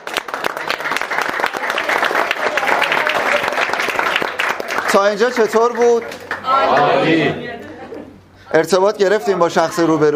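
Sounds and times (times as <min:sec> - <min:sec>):
audience applause: 0:00.0 - 0:06.9
speech: 0:04.9 - 0:07.5, 0:08.5 - 0:10.1.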